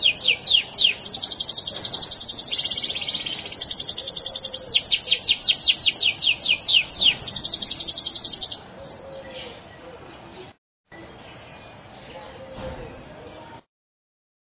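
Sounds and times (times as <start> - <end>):
bird chirping and trilling: 0.0 - 13.6.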